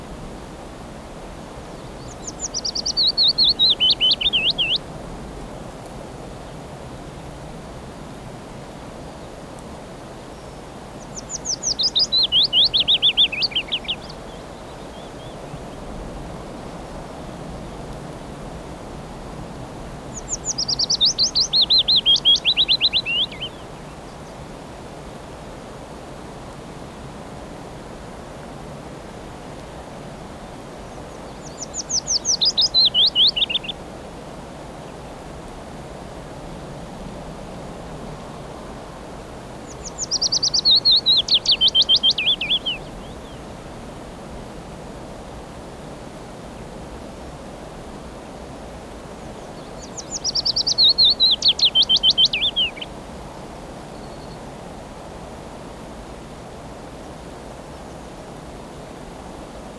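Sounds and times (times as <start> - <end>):
willow warbler spring song: 1.2 - 5.4, 10.3 - 24.6, 29.6 - 33.9, 36.4 - 43.8, 49.2 - 54.6.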